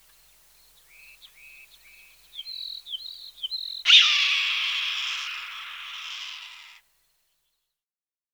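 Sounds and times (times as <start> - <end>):
red-tailed hawk calling: 1.0 - 6.8.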